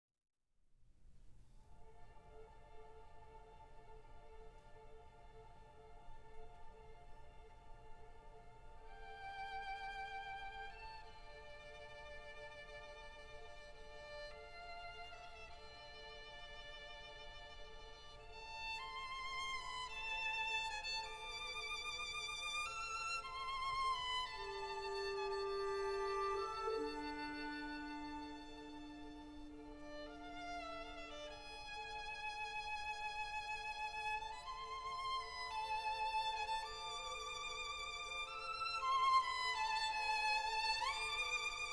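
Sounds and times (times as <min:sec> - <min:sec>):
violin concerto movement in D minor: 0:01.8 - 0:41.7.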